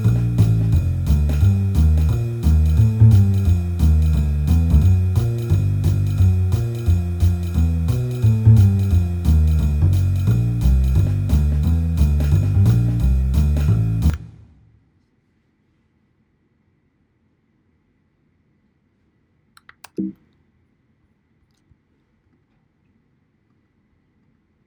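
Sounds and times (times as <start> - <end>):
jazz band playing without piano: 0.0 - 14.2.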